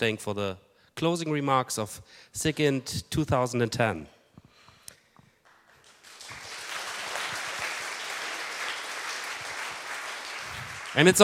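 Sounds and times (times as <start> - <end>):
speech: 0.0 - 4.2, 11.0 - 11.2
conference audience applause: 5.5 - 11.2.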